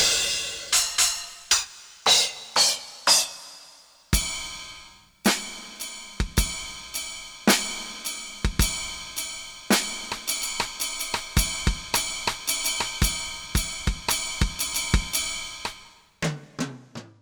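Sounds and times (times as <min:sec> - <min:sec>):
Korg DSS-1 drum kit: 0:00.0 - 0:17.2.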